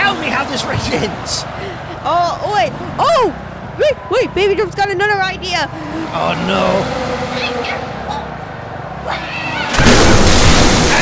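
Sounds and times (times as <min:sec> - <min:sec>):
speech: 0:00.6 - 0:07.9
explosion: 0:09.7 - 0:11.0.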